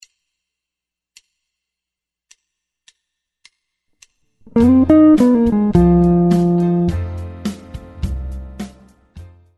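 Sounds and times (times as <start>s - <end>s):
guitar: 4.4s - 7.5s.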